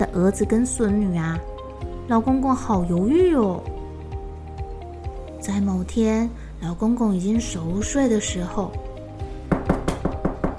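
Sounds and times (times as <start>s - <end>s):
speech: 0.0s - 1.5s, 2.1s - 3.8s, 5.4s - 8.8s
knocking on a door: 9.5s - 10.5s.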